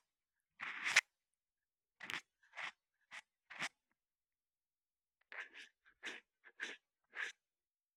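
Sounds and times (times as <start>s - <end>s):
left ear cleaning: 0.6s - 1.1s, 2.0s - 3.7s, 5.3s - 7.4s.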